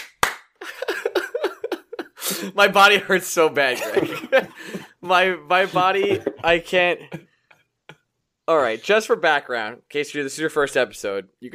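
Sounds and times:
hand claps: 0:00.0 - 0:00.7
laughter: 0:00.6 - 0:02.7, 0:03.7 - 0:07.2
speech: 0:02.4 - 0:07.3, 0:08.5 - 0:11.5.

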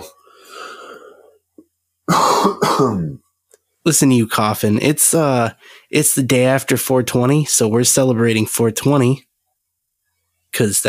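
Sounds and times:
coughing: 0:02.0 - 0:03.3
speech: 0:02.4 - 0:03.2, 0:03.8 - 0:09.3, 0:10.5 - 0:10.8.

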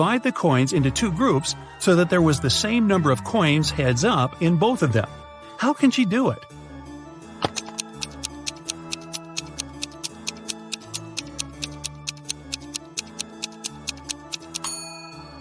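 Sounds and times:
speech: 0:00.0 - 0:06.6
clock ticking countdown: 0:07.5 - 0:14.7.

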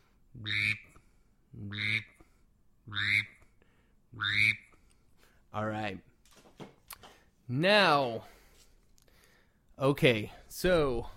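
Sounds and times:
male mallard drake call imitated on a handheld duck-call whistle: 0:00.4 - 0:00.9, 0:01.6 - 0:02.2, 0:02.9 - 0:03.4, 0:04.2 - 0:04.7
speech: 0:00.4 - 0:00.9, 0:01.6 - 0:02.1, 0:05.6 - 0:06.1, 0:07.5 - 0:08.3, 0:09.8 - 0:11.1.

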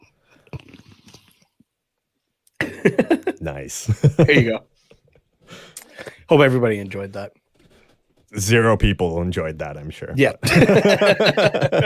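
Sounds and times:
slurping a drink from a pop can: 0:00.4 - 0:01.6
laughter: 0:02.6 - 0:04.6, 0:10.4 - 0:11.8
speech: 0:02.8 - 0:04.7, 0:06.3 - 0:07.4, 0:08.3 - 0:11.8.

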